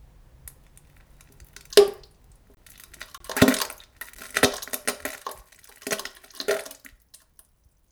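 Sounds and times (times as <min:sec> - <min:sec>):
soft squelching and splashing: 0:00.0 - 0:07.9.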